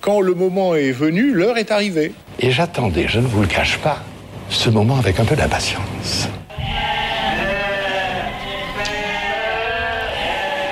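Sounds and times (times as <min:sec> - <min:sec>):
speech: 0:00.0 - 0:06.9
flock of sheep bleating: 0:06.5 - 0:10.7.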